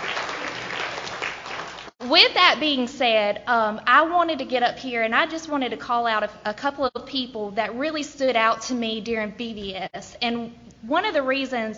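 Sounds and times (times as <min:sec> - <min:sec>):
audience applause: 0:00.0 - 0:01.9
speech: 0:02.1 - 0:11.7.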